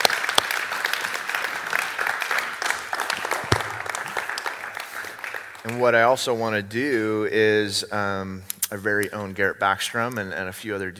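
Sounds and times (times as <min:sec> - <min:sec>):
audience applause: 0:00.0 - 0:06.4
speech: 0:05.7 - 0:10.9.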